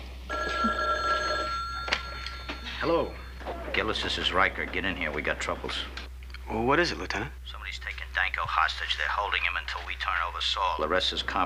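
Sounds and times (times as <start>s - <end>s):
telephone bell ringing: 0.3s - 3.7s
speech: 2.8s - 3.2s, 3.8s - 11.4s.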